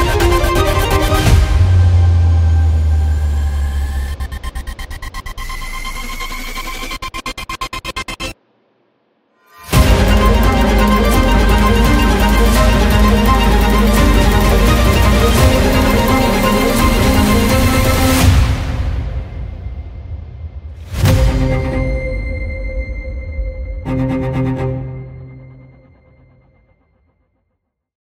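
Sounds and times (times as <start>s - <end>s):
revolutionary music: 0.0s - 8.4s, 9.5s - 19.7s, 20.8s - 26.6s.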